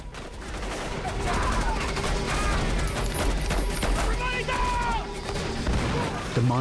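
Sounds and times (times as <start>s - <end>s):
heavy gunfire from soldiers firing on a rebel assault force: 0.0s - 6.4s
raised voices: 0.9s - 5.2s.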